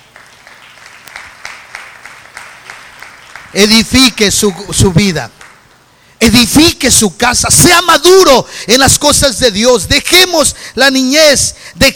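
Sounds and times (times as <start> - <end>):
audience applause: 0.0 - 4.8
speech: 3.5 - 5.4, 6.2 - 11.9.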